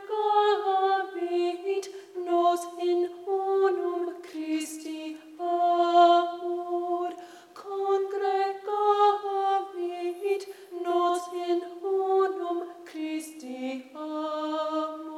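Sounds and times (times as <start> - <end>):
soprano singing a choral piece: 0.0 - 15.1.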